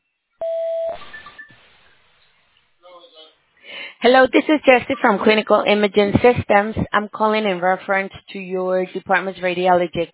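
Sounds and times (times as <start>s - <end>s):
voicemail beep: 0.4s - 1.6s
speech: 4.0s - 10.1s.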